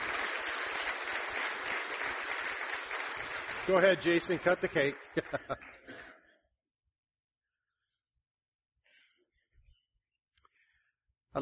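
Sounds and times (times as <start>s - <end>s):
audience applause: 0.0s - 5.4s
speech: 3.7s - 5.8s
laughter: 4.8s - 5.9s.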